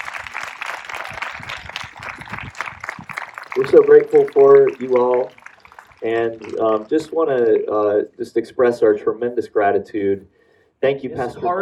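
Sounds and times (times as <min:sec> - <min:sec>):
audience applause thanking Franklin Church: 0:00.0 - 0:07.9
speech: 0:03.6 - 0:05.4, 0:06.0 - 0:11.6.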